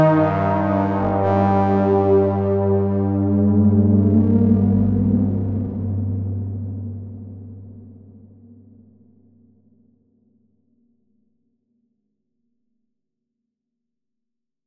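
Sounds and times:
synth pad: 0.0 - 8.5.

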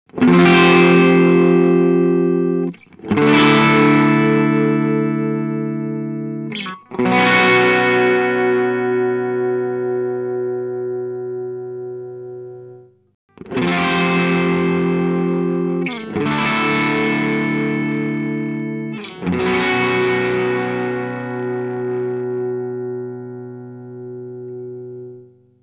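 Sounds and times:
Earthquaker Devices Zoar pedal at 18 vs 9 volts: 0.1 - 25.6.

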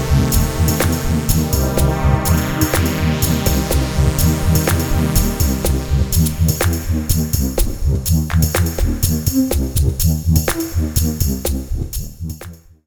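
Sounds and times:
OBxd synthesizer with filter and reverb: 0.0 - 11.9.

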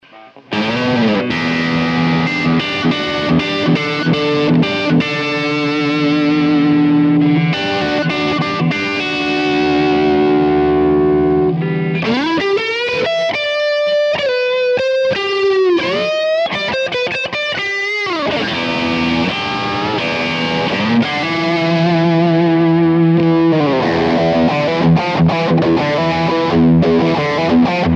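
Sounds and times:
guitar through PlexiRanger Plexi pedal plus boost: 0.0 - 27.9.

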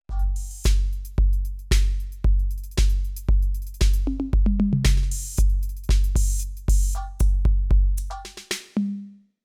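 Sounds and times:
Millenium MPS450 808 electronic drum kit: 0.0 - 8.9.

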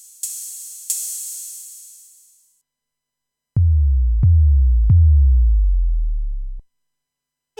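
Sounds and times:
Roland SPD ONE Electro electronic drum pad sounds: 0.0 - 2.4, 3.6 - 6.6.

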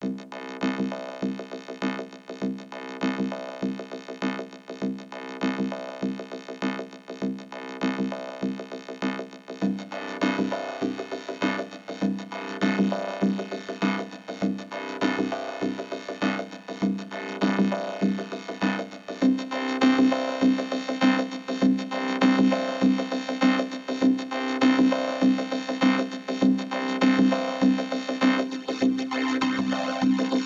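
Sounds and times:
drums: 0.0 - 30.4
vocoder: 9.9 - 30.4.

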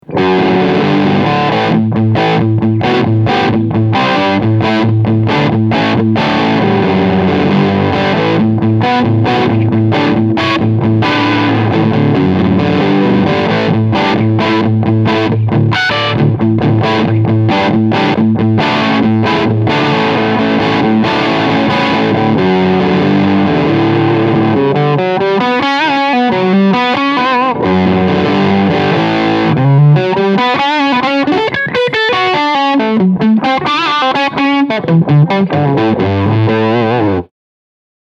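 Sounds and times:
medium gain distorted guitar: 0.0 - 37.3.

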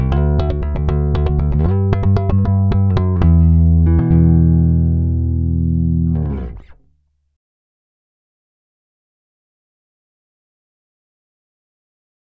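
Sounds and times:
fingered P bass metal line: 0.0 - 6.9.

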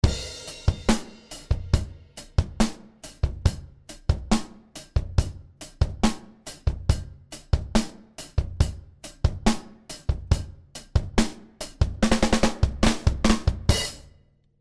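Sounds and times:
soft drums processed with Elysia Karacter: 0.0 - 14.2.

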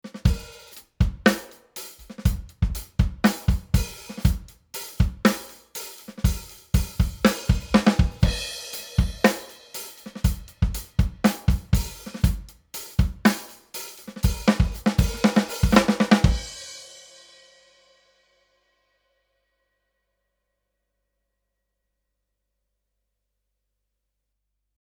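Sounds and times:
uncompressed drums: 0.0 - 18.1.

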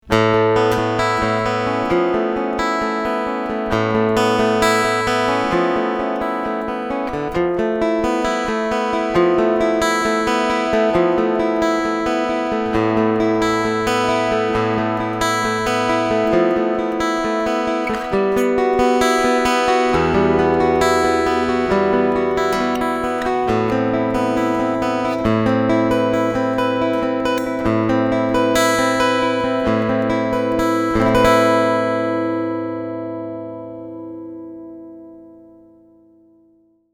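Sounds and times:
Ibanez AW80CE acoustic electric guitar through preamp: 0.0 - 36.7.

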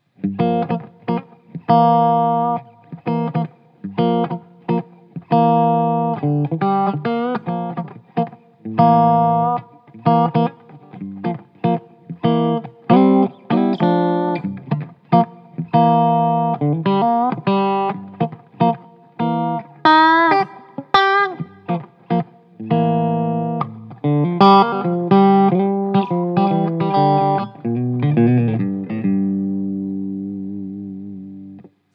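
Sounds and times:
clean Tube Engine tone: 0.0 - 31.9.

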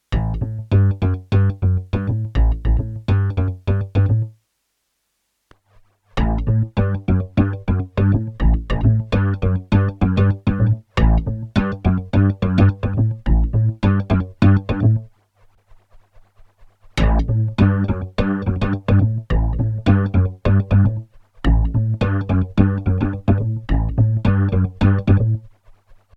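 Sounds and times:
DX7 synth bass: 0.1 - 4.3, 6.2 - 15.1, 17.0 - 25.5.

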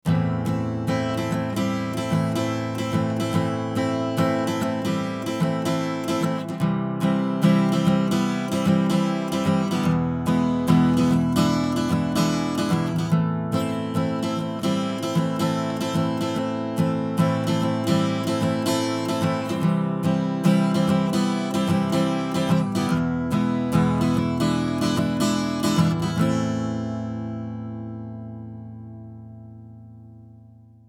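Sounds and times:
Western guitar through Summit Audio TLA 100A compressor: 0.0 - 30.8.

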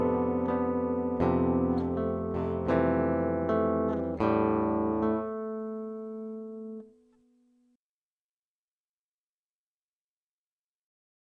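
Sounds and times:
guitars: 0.0 - 7.7.

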